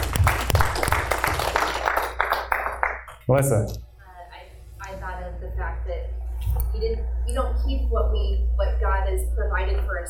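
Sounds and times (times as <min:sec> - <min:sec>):
crowd clapping hands: 0:00.0 - 0:03.2
speech: 0:03.3 - 0:03.9, 0:05.8 - 0:10.0.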